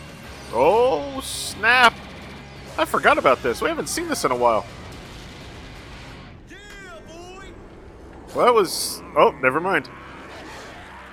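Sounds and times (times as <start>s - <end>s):
speech: 0.5s - 2.0s, 2.8s - 4.8s, 8.4s - 10.0s
light laser attack explosive blast hitting a building: 3.2s - 11.0s.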